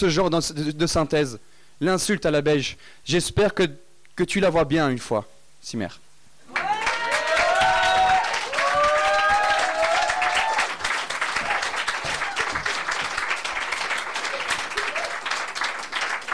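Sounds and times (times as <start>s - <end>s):
speech: 0.0s - 6.0s
whistles and cheers: 6.5s - 12.6s, 14.7s - 15.3s
audience applause: 6.5s - 16.3s.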